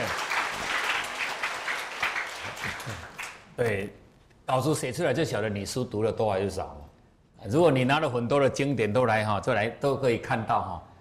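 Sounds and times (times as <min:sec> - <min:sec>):
audience applause: 0:00.0 - 0:03.5
speech: 0:03.6 - 0:10.9.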